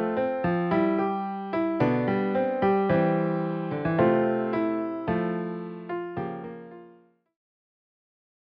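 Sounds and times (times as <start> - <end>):
piano bass notes: 0.0 - 6.7.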